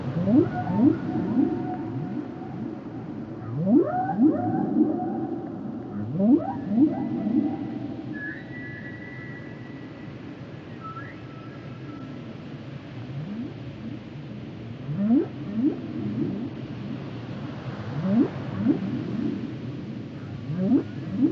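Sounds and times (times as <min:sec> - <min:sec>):
whale song with low upswept moans: 0:00.2 - 0:08.6, 0:14.9 - 0:16.6, 0:17.9 - 0:19.4, 0:20.5 - 0:21.3.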